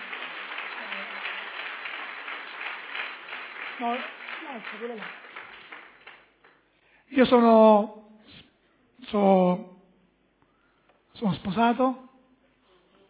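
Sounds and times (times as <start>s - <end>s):
loud applause from audience: 0.0s - 6.6s
speech: 3.8s - 5.2s, 7.1s - 8.1s, 9.1s - 9.7s, 11.2s - 12.0s.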